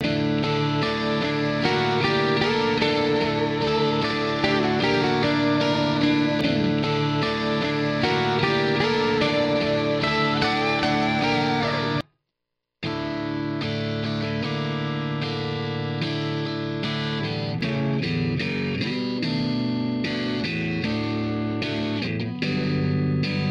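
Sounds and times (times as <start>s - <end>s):
guitars: 0.0s - 12.0s, 12.8s - 23.4s.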